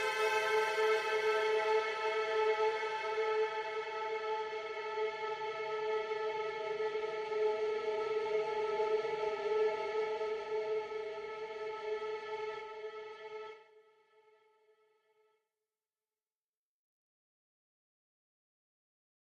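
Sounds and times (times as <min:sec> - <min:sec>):
ambient music: 0:00.0 - 0:12.2.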